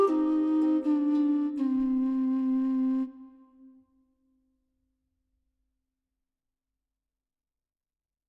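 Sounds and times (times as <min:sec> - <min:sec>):
hurdy-gurdy: 0:00.0 - 0:03.1
harp: 0:00.0 - 0:03.7.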